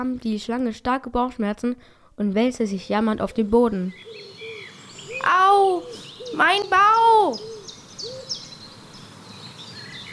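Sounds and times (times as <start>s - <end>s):
speech: 0.0s - 4.4s, 5.2s - 7.5s
owl hooting: 2.9s - 10.1s.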